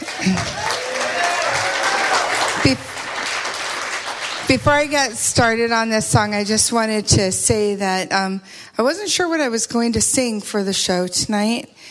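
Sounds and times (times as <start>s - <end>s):
audience applause welcoming a singer at a council of the blind show: 0.0s - 5.1s
speech: 0.2s - 0.6s, 2.7s - 2.9s, 4.5s - 11.8s.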